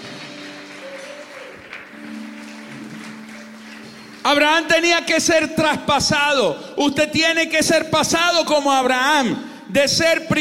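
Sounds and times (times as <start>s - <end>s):
crowd applauding: 0.0s - 5.1s
speech: 4.2s - 10.3s.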